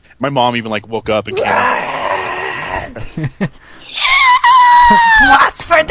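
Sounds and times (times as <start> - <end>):
speech: 0.2 - 1.9, 2.9 - 3.8, 4.9 - 5.8
voice imitating an eerie high-pitched wailing squeal: 1.3 - 2.8, 3.8 - 5.5.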